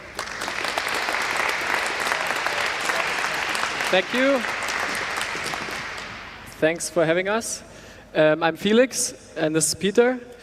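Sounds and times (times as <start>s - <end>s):
audience applause: 0.0s - 6.6s
speech: 3.9s - 4.6s, 6.6s - 10.4s.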